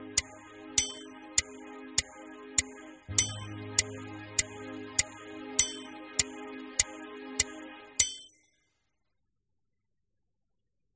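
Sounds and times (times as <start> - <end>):
warm-up exercise playalong music in A: 0.0 - 8.3.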